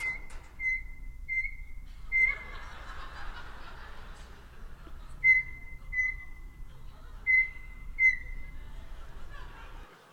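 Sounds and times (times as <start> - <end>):
clattering microwave door: 0.0 - 0.7
bird imitating microwave button beeps: 0.0 - 2.6, 5.2 - 6.6, 7.2 - 8.6
low hum: 0.0 - 10.1
laughter: 1.9 - 10.1.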